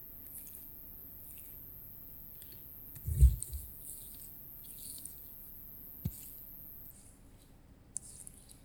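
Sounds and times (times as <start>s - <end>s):
right ear being picked with a bamboo ear pick: 0.0s - 6.9s.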